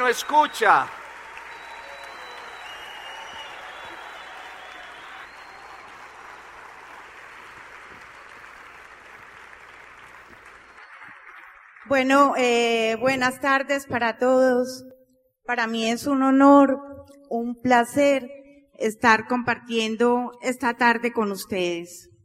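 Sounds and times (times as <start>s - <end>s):
speech: 0.0s - 1.0s, 11.9s - 14.9s, 15.5s - 22.1s
audience applause: 0.0s - 11.9s.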